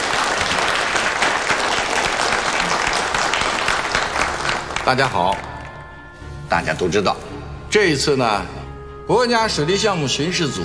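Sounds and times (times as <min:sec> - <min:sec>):
crowd clapping: 0:00.0 - 0:06.2
speech: 0:04.9 - 0:05.5, 0:06.5 - 0:10.6.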